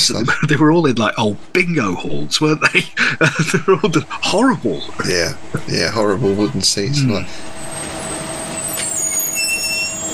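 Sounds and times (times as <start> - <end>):
laughter: 0.0 - 0.8, 2.4 - 4.2
speech: 0.0 - 7.6
Arkham bus engine pulling up outside: 4.8 - 10.1.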